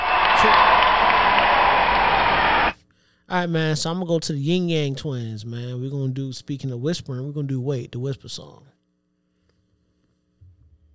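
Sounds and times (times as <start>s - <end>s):
round of applause: 0.0s - 2.8s
speech: 0.4s - 0.7s, 3.3s - 8.8s.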